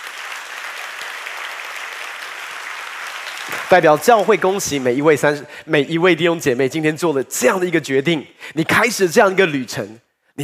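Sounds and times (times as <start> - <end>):
audience applause: 0.0 - 5.0
speech: 3.7 - 10.4.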